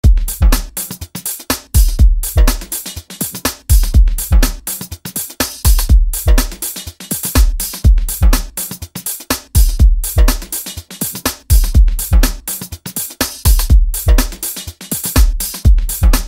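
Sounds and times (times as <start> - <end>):
broken beat nu-jazz jam: 0.0 - 16.2.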